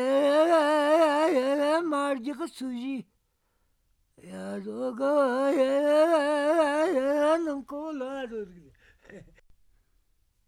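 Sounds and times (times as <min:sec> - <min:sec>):
folk song: 0:00.0 - 0:03.0, 0:04.2 - 0:09.4.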